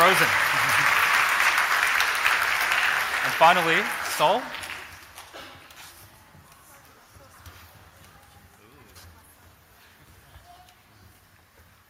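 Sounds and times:
crowd clapping: 0:00.0 - 0:05.8
speech: 0:00.1 - 0:00.6, 0:03.2 - 0:04.6.

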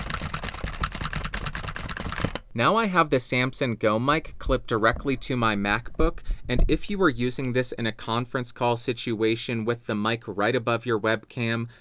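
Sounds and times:
typing on a keyboard: 0:00.0 - 0:02.5
speech: 0:02.6 - 0:11.8.

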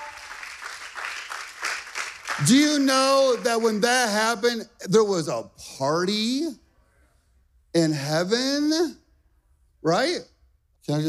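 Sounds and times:
crowd cheering and whooping: 0:00.0 - 0:00.7
crowd clapping: 0:00.0 - 0:04.1
speech: 0:02.4 - 0:06.6, 0:07.7 - 0:09.0, 0:09.8 - 0:10.3, 0:10.9 - 0:11.0.

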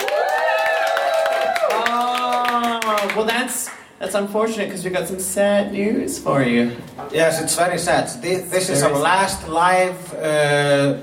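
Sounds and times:
voices cheering and whooping: 0:00.0 - 0:02.2
crowd applauding: 0:00.0 - 0:03.8
speech: 0:03.0 - 0:11.0.

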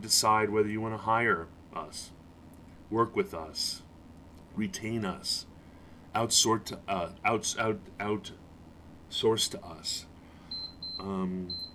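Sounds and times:
speech: 0:00.0 - 0:02.2, 0:02.9 - 0:03.8, 0:04.6 - 0:05.5, 0:06.1 - 0:08.4, 0:09.1 - 0:10.1, 0:11.0 - 0:11.6
Gymboss Run Walk Run interval workout timer beeps: 0:10.5 - 0:11.7.

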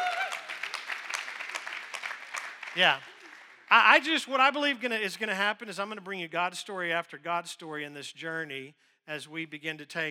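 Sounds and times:
audience clapping: 0:00.0 - 0:04.3
speech: 0:02.8 - 0:03.1, 0:03.7 - 0:10.0.

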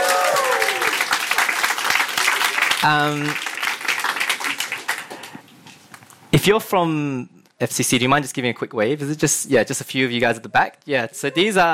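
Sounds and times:
audience applause: 0:00.0 - 0:05.4
speech: 0:02.8 - 0:03.4, 0:06.4 - 0:11.7.

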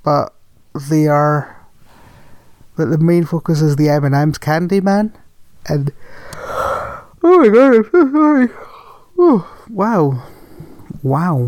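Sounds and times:
speech: 0:00.0 - 0:01.6, 0:02.8 - 0:06.4, 0:07.2 - 0:10.4, 0:11.0 - 0:11.4
voiced yawn: 0:06.1 - 0:07.2, 0:08.5 - 0:11.0.

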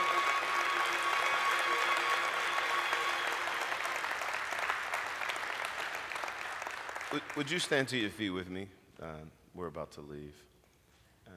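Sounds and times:
audience hand clapping: 0:00.0 - 0:08.3
speech: 0:07.1 - 0:10.5.

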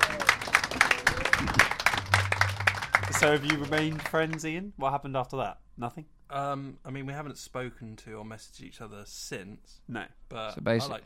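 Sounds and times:
audience round of applause: 0:00.0 - 0:04.4
speech: 0:03.2 - 0:11.0.

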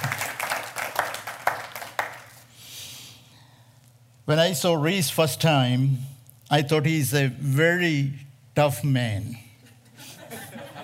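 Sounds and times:
audience clapping: 0:00.0 - 0:02.5
speech: 0:04.3 - 0:09.4
laughter: 0:09.7 - 0:10.8.

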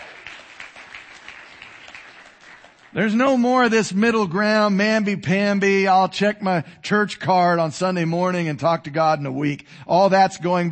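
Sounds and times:
church congregation clapping during a sermon: 0:00.0 - 0:03.7
speech: 0:02.9 - 0:10.7.

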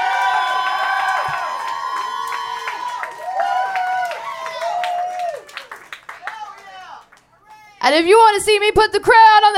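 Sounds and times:
crowd cheering and whooping: 0:00.0 - 0:07.0
speech: 0:07.9 - 0:09.5.

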